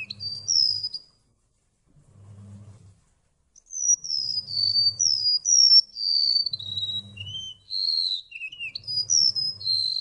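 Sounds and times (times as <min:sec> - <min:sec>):
golden-bellied gerygone song: 0:00.0 - 0:01.3, 0:03.6 - 0:09.9.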